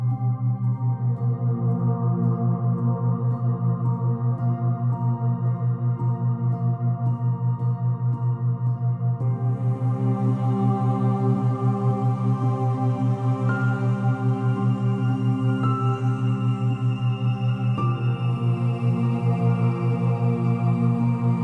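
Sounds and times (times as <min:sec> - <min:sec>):
binaural beat drone of soft ambient tones: 0:00.0 - 0:21.4.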